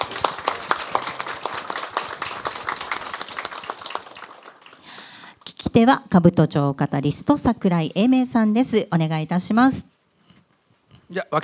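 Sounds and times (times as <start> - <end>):
audience applause: 0.0 - 5.4
speech: 5.8 - 9.9, 11.1 - 11.4.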